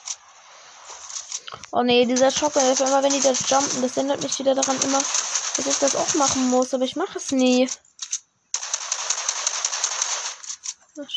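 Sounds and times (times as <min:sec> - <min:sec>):
speech: 0:01.5 - 0:07.9, 0:11.0 - 0:11.1
video game shooter automatic gunfire: 0:02.3 - 0:06.7, 0:08.6 - 0:10.6.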